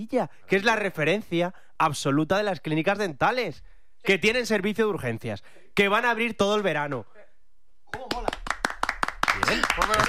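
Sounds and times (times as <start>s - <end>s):
speech: 0.0s - 7.2s, 9.4s - 10.0s
audience applause: 8.0s - 10.0s.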